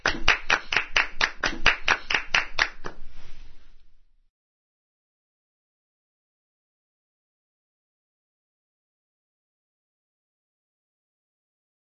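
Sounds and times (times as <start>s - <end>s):
applause: 0.0s - 3.0s.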